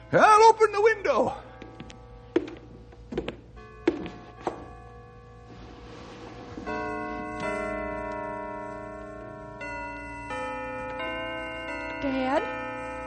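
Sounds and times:
church bells ringing a slow melody: 0:00.0 - 0:13.0
speech: 0:00.1 - 0:01.4
sharp knocks: 0:02.4 - 0:04.7.

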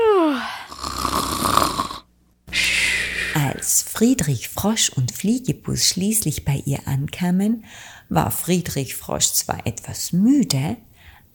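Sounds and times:
snoring of a napping character: 0:00.6 - 0:03.6
speech: 0:04.0 - 0:11.3.

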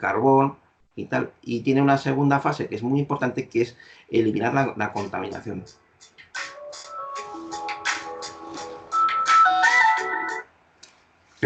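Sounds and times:
speech: 0:00.0 - 0:06.5
phone ringtone melody: 0:06.6 - 0:10.4.

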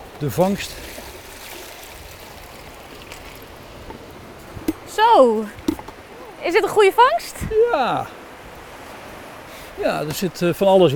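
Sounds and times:
speech: 0:00.2 - 0:01.0, 0:05.1 - 0:05.6, 0:06.4 - 0:08.2, 0:09.8 - 0:10.9
water poured into a tub: 0:00.4 - 0:03.5.

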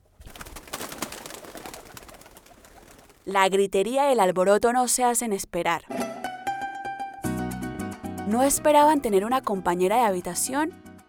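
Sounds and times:
bird fluttering inside a room: 0:00.0 - 0:03.3
speech: 0:03.2 - 0:06.1, 0:08.3 - 0:10.8.

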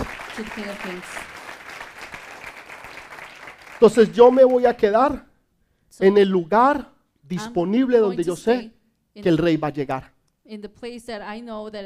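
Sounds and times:
audience applause: 0:00.0 - 0:04.7
speech: 0:00.4 - 0:01.3, 0:03.8 - 0:05.3, 0:05.9 - 0:11.8.

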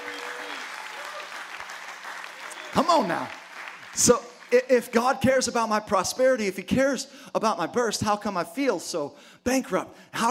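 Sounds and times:
audience applause: 0:00.0 - 0:04.6
speech: 0:02.8 - 0:10.2.

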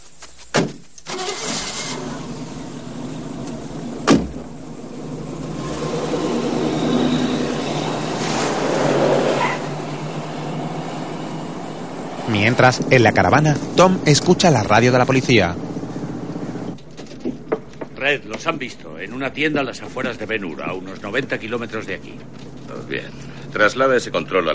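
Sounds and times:
car driving off: 0:01.1 - 0:17.8, 0:18.4 - 0:24.5
car door closing: 0:03.4 - 0:04.6
speech: 0:12.5 - 0:15.8, 0:18.1 - 0:24.5.

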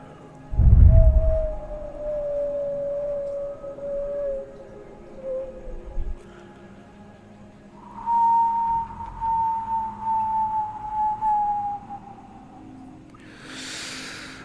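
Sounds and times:
low thump: 0:00.5 - 0:01.8
howling wind sound effect from horror film: 0:00.5 - 0:06.3, 0:07.8 - 0:12.8.

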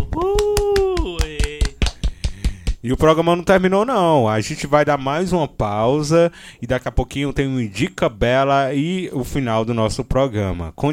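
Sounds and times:
applause: 0:00.0 - 0:02.8
speech: 0:02.8 - 0:10.9.

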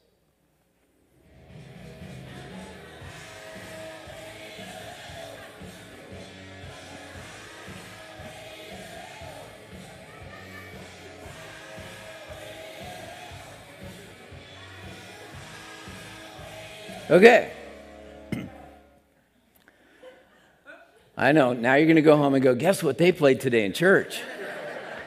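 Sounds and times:
hard rock song: 0:01.3 - 0:18.7
laughter: 0:09.6 - 0:11.1, 0:24.0 - 0:25.0
speech: 0:17.1 - 0:17.6, 0:21.2 - 0:24.3.

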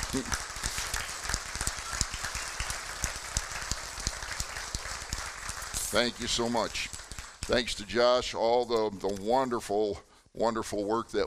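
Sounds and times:
audience applause: 0:00.0 - 0:07.8
speech: 0:00.1 - 0:00.5, 0:05.9 - 0:11.2.

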